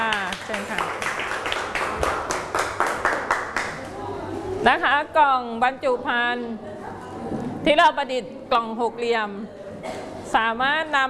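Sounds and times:
classroom clapping: 0:00.0 - 0:04.0
speech: 0:04.6 - 0:09.6, 0:10.3 - 0:11.0.

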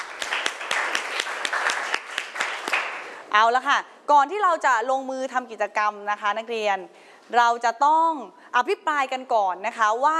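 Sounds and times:
students applauding: 0:00.0 - 0:03.2
speech: 0:03.4 - 0:10.1.

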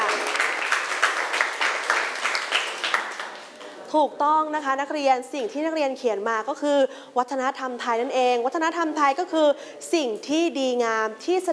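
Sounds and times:
students clapping: 0:00.0 - 0:03.6
speech: 0:03.9 - 0:11.5.

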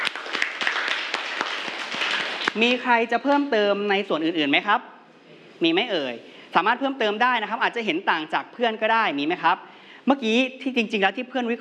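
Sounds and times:
classroom applause for a student: 0:00.0 - 0:02.6
speech: 0:02.6 - 0:04.9, 0:05.6 - 0:11.5.

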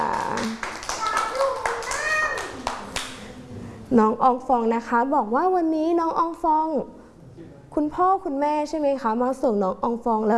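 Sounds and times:
children clapping hands: 0:00.0 - 0:03.3
speech: 0:03.9 - 0:07.0, 0:07.8 - 0:10.3.

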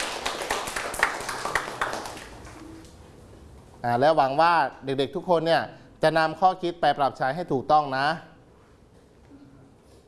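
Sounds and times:
hand clapping: 0:00.0 - 0:03.0
speech: 0:03.8 - 0:08.3.

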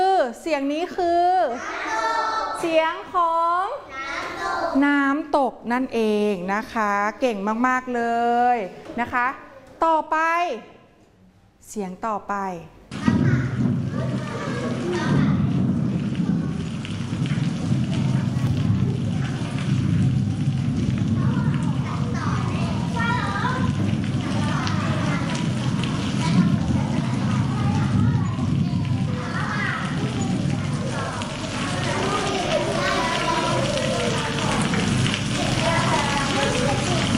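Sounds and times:
speech: 0:00.3 - 0:02.0, 0:02.6 - 0:03.9, 0:04.5 - 0:10.7, 0:11.7 - 0:12.8
deep low thunder rumble: 0:12.9 - 0:37.1
heavy rain in a thunderstorm: 0:12.9 - 0:37.1.

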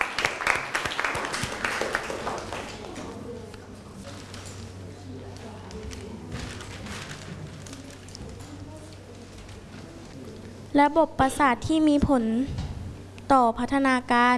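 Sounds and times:
classroom applause: 0:00.0 - 0:03.2
speech: 0:10.8 - 0:12.6, 0:13.3 - 0:14.3.

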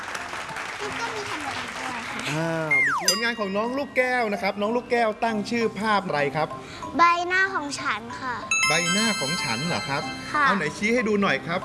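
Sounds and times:
audience applause at a children's art presentation: 0:00.0 - 0:03.0
speech: 0:00.8 - 0:11.6.

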